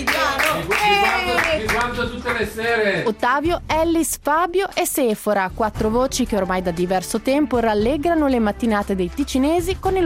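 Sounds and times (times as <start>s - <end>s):
applause: 0.0s - 2.6s
speech: 2.2s - 10.0s.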